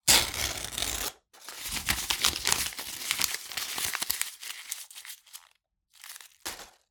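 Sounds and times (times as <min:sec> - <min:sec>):
book paper ripping and scrunching: 0:00.1 - 0:06.8.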